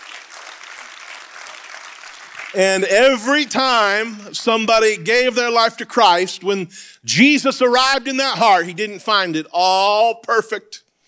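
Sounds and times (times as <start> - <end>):
audience clapping hands: 0.0 - 4.2
speech: 2.5 - 10.8.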